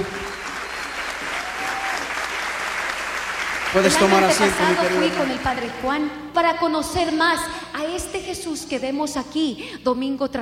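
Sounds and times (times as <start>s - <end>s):
audience applause: 0.0s - 5.8s
speech: 3.7s - 10.4s.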